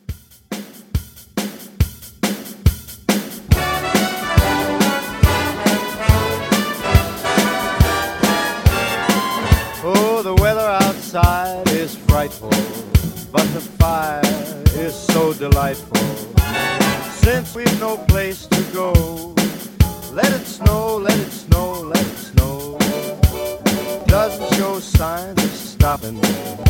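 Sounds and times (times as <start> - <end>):
50s Christmas music: 3.5 - 19.3, 19.9 - 26.6.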